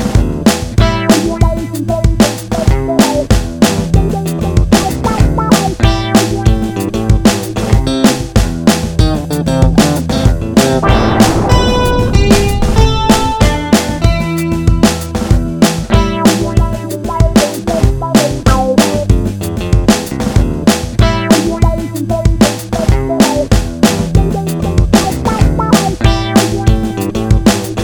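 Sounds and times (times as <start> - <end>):
funky music: 0.0 - 27.8.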